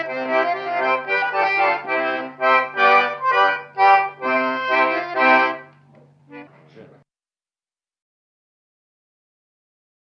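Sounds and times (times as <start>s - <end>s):
folk polka music: 0.0s - 7.0s.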